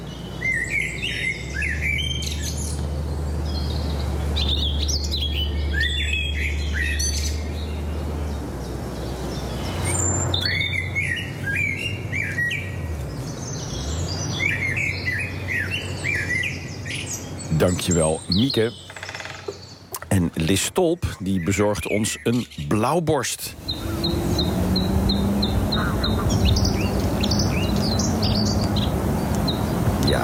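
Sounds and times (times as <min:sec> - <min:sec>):
blackbird singing: 0:00.0 - 0:30.2
woodpecker: 0:17.5 - 0:20.5, 0:23.7 - 0:29.7
speech: 0:17.6 - 0:18.8, 0:20.5 - 0:23.9.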